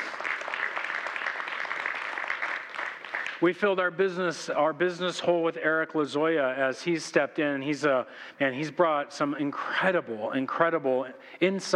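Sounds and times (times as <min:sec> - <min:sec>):
audience cheering and applause: 0:00.0 - 0:03.4
speech: 0:03.4 - 0:11.7.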